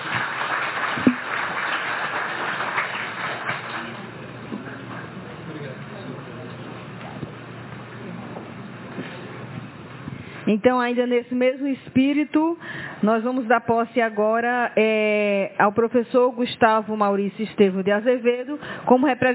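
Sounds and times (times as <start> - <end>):
audience applause: 0.0 - 4.2
speech: 10.5 - 19.3.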